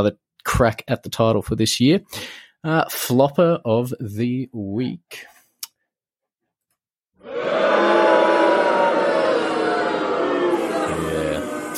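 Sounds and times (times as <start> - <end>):
speech: 0.0 - 5.3
crowd booing and hissing: 7.2 - 11.7.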